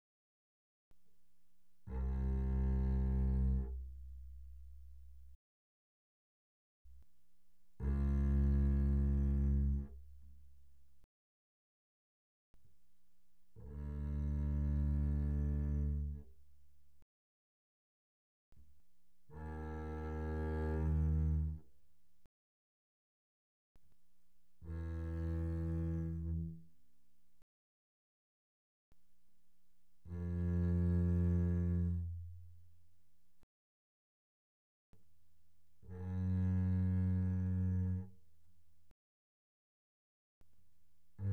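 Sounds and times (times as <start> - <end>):
double bass bowed arco mezzo forte notes: 1.8 - 5.4, 7.8 - 10.4, 13.6 - 16.3, 19.3 - 21.7, 24.6 - 26.7, 30.1 - 32.5, 35.8 - 38.1.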